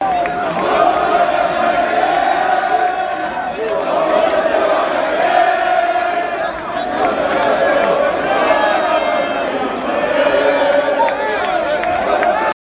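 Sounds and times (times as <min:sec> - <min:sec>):
football fans chanting in Brighton: 0:00.0 - 0:12.6.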